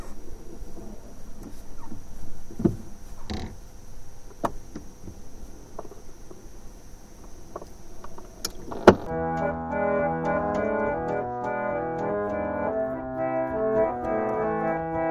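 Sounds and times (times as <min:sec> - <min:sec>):
mix of old sounds: 0:09.1 - 0:15.0.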